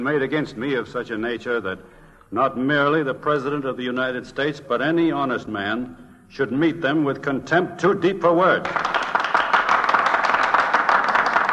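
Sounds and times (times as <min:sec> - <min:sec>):
speech: 0:00.0 - 0:09.0
senators applauding: 0:08.5 - 0:11.5.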